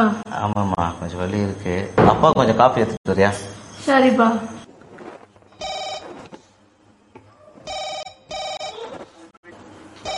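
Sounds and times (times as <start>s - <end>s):
speech: 0.0s - 4.6s
telephone ringing with an incoming foreign call: 5.6s - 6.3s, 7.7s - 8.9s.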